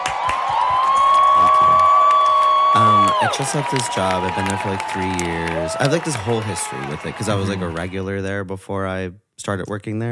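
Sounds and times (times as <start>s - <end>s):
applause sound effect: 0.0s - 8.1s
speech: 3.3s - 10.0s.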